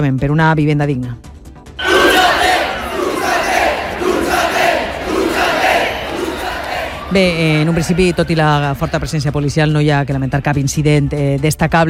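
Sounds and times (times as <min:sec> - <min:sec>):
speech: 0:00.0 - 0:01.3, 0:07.1 - 0:11.8
group of protesters chanting slogans: 0:01.8 - 0:07.7.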